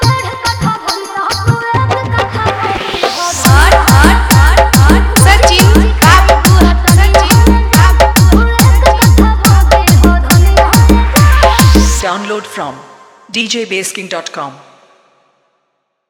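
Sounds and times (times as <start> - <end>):
dholki drum mix: 0.0 - 12.0.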